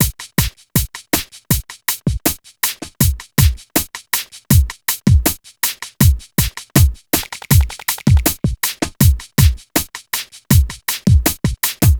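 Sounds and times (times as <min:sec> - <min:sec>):
East Coast hip hop drum beat: 0:00.0 - 0:11.9.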